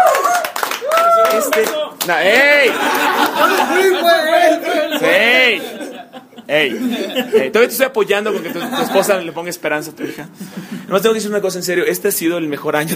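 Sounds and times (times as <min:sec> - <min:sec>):
hand clapping: 0:00.0 - 0:03.8
speech: 0:01.6 - 0:05.9, 0:06.5 - 0:12.9
excited voices and chuckles: 0:02.3 - 0:11.1.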